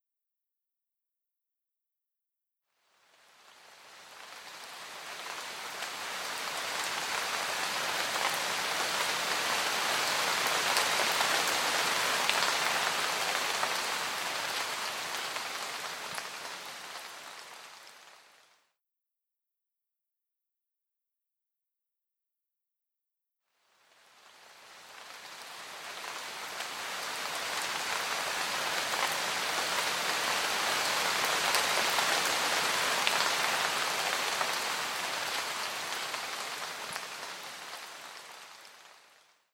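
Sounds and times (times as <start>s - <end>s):
rain: 2.9s - 18.6s, 23.8s - 39.3s.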